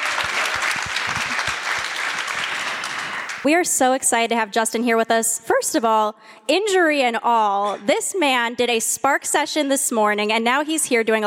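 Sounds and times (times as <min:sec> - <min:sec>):
round of applause: 0:00.0 - 0:03.5
speech: 0:03.4 - 0:11.2.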